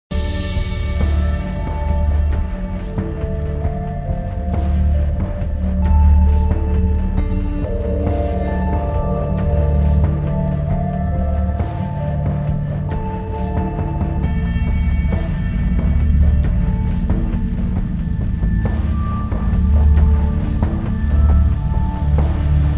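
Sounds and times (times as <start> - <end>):
ambience: 0.1 - 22.7.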